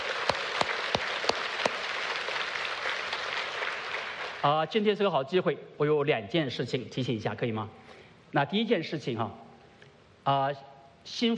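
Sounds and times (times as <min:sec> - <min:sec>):
audience applause: 0:00.0 - 0:04.4
speech: 0:04.4 - 0:09.4, 0:10.3 - 0:11.3.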